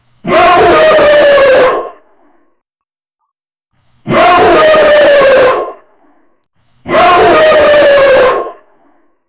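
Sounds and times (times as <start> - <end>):
wolf howling: 0.3 - 1.9, 4.1 - 5.8, 6.9 - 8.6.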